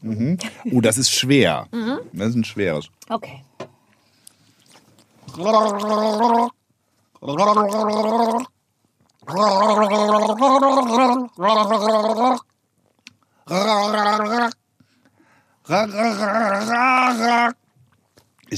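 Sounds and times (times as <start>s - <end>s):
speech: 0.0s - 3.5s, 5.4s - 6.6s, 7.2s - 8.5s, 9.2s - 12.5s, 13.5s - 14.6s, 15.7s - 17.6s
person gargling water to a melody: 5.3s - 6.6s, 7.2s - 8.6s, 9.2s - 12.5s, 13.5s - 14.6s, 15.7s - 17.6s.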